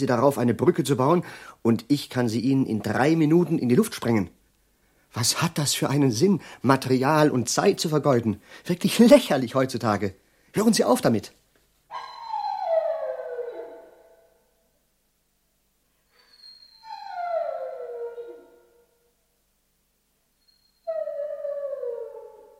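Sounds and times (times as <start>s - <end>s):
speech: 0.0s - 4.4s, 5.1s - 12.1s
dog howling: 11.9s - 14.3s, 16.5s - 18.8s, 20.8s - 22.5s.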